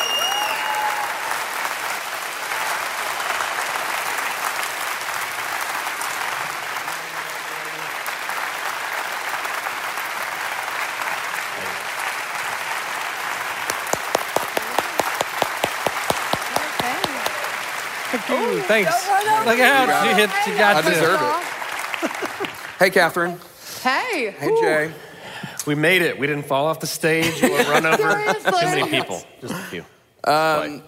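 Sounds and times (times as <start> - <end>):
crowd applause: 0.0 - 23.1
speech: 18.3 - 21.5, 22.8 - 25.0, 25.6 - 30.8
laughter: 21.8 - 22.6, 27.2 - 29.7.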